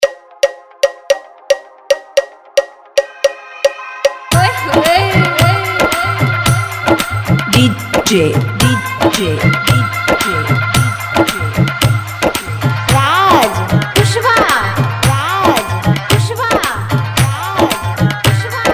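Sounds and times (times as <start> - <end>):
Bollywood remix music: 0.0 - 18.7.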